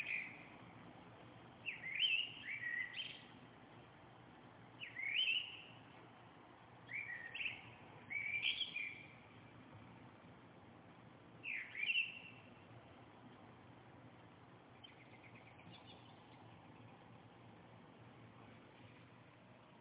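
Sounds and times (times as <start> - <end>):
birdsong: 0.0 - 0.8, 1.5 - 3.5, 4.7 - 6.0, 6.8 - 9.7, 11.4 - 12.8, 14.6 - 17.5, 18.4 - 19.7.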